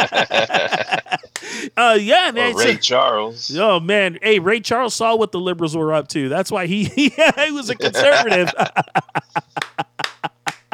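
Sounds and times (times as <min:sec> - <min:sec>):
speech: 0:00.0 - 0:00.9, 0:01.6 - 0:09.4
laughter: 0:00.0 - 0:02.8, 0:06.7 - 0:10.7
round of applause, clapping: 0:09.4 - 0:10.7.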